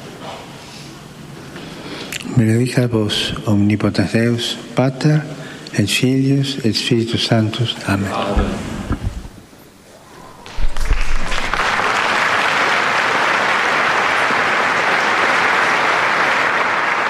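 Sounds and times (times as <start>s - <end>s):
speech: 2.4s - 8.8s
large crowd of pilgrims applauding: 10.4s - 17.0s.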